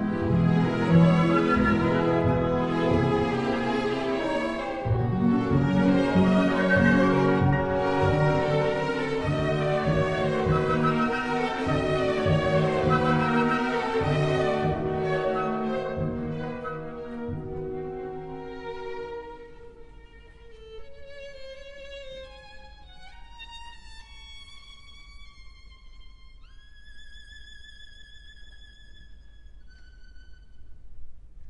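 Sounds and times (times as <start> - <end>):
orchestral waltz: 0.0 - 20.0.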